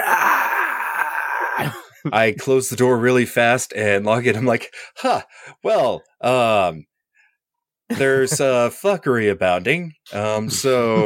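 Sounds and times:
person screaming in imitation of a Wilhelm scream: 0.0 - 1.8
speech: 1.6 - 6.9, 7.9 - 11.0.

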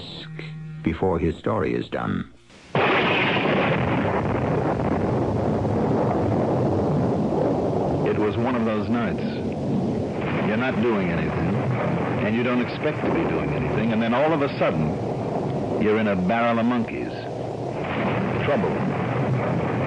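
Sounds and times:
faint voice-like tones: 0.0 - 2.3
speech: 0.8 - 2.4, 8.4 - 9.9, 10.5 - 15.2, 15.8 - 17.2, 18.4 - 19.0
thunder from a thunderstorm: 2.7 - 19.8.

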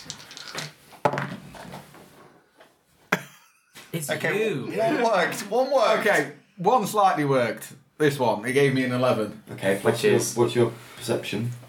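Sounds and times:
dice rolling on a hard tabletop: 0.0 - 1.7
speech: 3.9 - 11.6.

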